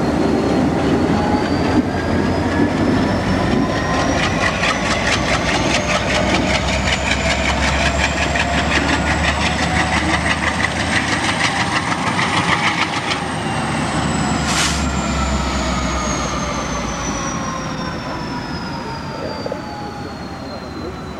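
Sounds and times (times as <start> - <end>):
EMD and Alco diesel locomotive engines: 0.0 - 21.1.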